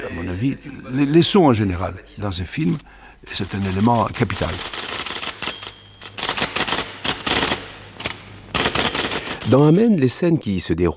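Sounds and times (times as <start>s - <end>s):
speech: 0.0s - 4.8s, 9.5s - 10.9s
low steady hum: 0.0s - 10.5s
typewriter clacking: 3.3s - 10.1s.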